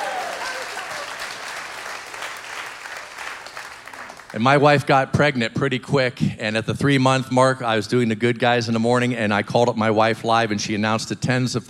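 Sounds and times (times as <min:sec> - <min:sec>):
audience applause: 0:00.0 - 0:04.4
speech: 0:04.3 - 0:11.6.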